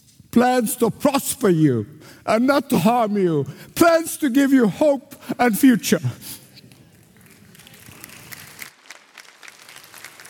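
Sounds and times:
speech: 0:00.4 - 0:06.4
audience clapping: 0:06.9 - 0:10.2.

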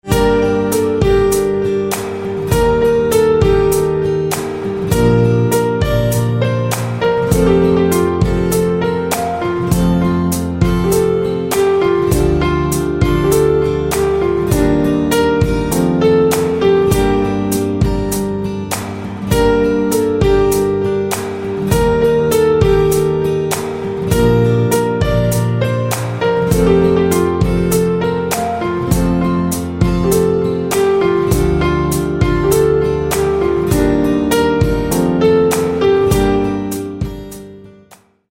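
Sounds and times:
piano: 0:00.0 - 0:38.3.

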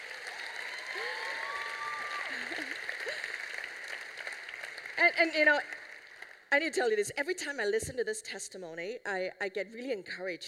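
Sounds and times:
audience applause: 0:00.0 - 0:06.4
speech: 0:05.1 - 0:05.8, 0:06.5 - 0:10.4.

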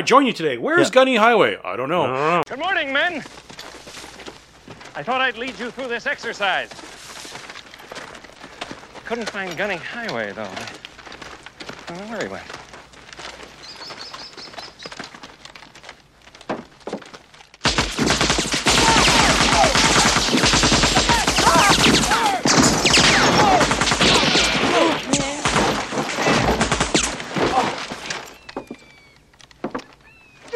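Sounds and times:
speech: 0:00.0 - 0:03.5, 0:05.0 - 0:06.9, 0:09.1 - 0:10.8, 0:11.9 - 0:12.6
AK-47 assault rifle automatic fire in the film Heartbreak Ridge: 0:17.6 - 0:27.3.

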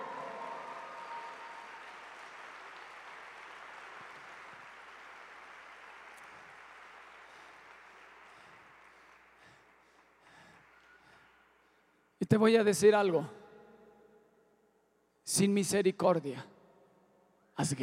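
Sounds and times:
audience applause: 0:00.0 - 0:11.8
speech: 0:12.3 - 0:13.4, 0:15.4 - 0:16.5, 0:17.6 - 0:17.8.

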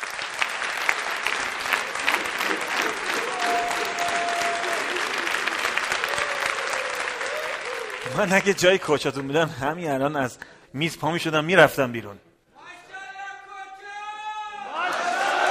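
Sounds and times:
audience applauding the coaches: 0:00.0 - 0:10.1, 0:14.8 - 0:15.4
speech: 0:08.2 - 0:12.3.

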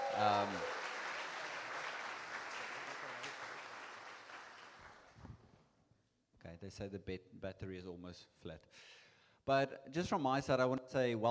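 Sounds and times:
applause for visiting parents: 0:00.0 - 0:05.2
speech: 0:00.2 - 0:00.8, 0:06.6 - 0:11.2.

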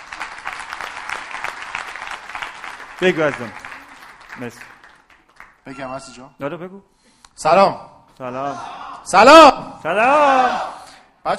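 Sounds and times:
group applause at a coaching session: 0:00.0 - 0:06.2
speech: 0:03.0 - 0:03.6, 0:04.4 - 0:04.7, 0:05.6 - 0:11.3.

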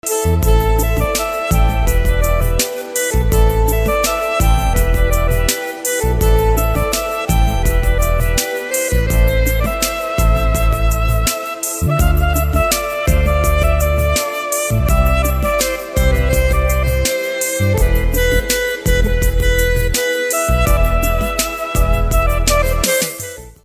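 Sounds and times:
saxophone instrumental ringtone: 0:00.0 - 0:23.6.

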